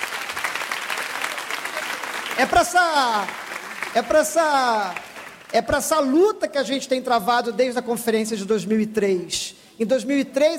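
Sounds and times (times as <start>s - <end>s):
audience applause: 0.0s - 5.6s
speech: 2.4s - 10.5s.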